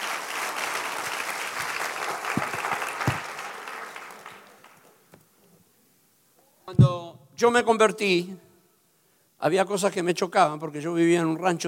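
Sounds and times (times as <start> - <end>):
audience applause: 0.0 - 5.0
speech: 6.8 - 8.4, 9.4 - 11.6.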